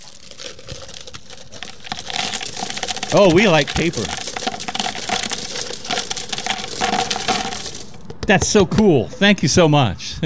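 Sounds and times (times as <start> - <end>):
pennies dumped into a penny pitch collection: 0.2 - 8.0
speech: 3.1 - 4.2, 8.3 - 10.2.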